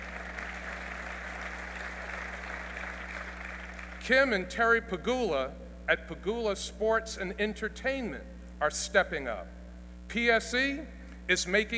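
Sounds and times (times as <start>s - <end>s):
audience clapping: 0.0s - 4.3s
speech: 4.0s - 11.7s.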